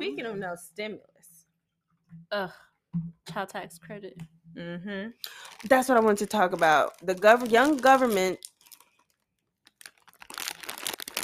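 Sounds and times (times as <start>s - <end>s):
speech: 0.0s - 1.2s, 2.1s - 8.5s
bag of crunchy potato chips crinkling: 5.3s - 11.2s.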